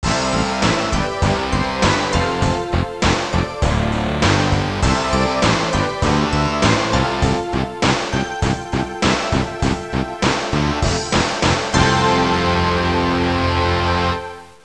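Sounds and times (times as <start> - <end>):
rock music ringtone: 0.0 - 14.4.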